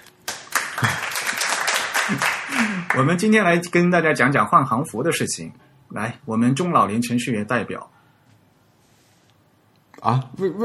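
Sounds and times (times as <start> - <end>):
applause: 0.2 - 3.2
speech: 3.0 - 8.0, 10.0 - 10.6.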